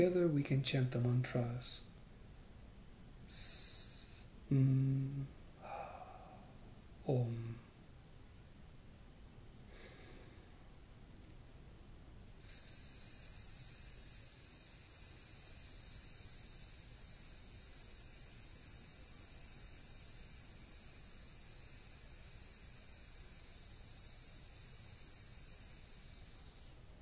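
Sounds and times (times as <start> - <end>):
speech: 0.0 - 1.9, 3.3 - 3.6, 4.5 - 5.4, 7.1 - 7.6
faint low rumble: 0.0 - 12.4
voice holding a long hissing sss: 3.3 - 6.5, 12.4 - 26.8.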